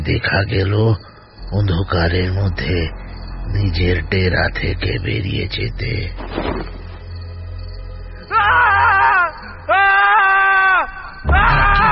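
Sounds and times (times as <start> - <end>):
speech: 0.0 - 6.8
loud screams from distant hills at night: 8.1 - 11.9.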